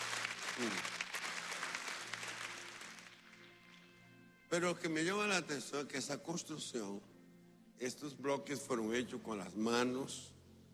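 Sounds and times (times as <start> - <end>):
audience applause: 0.0 - 3.6
speech: 4.5 - 7.2, 7.8 - 10.4.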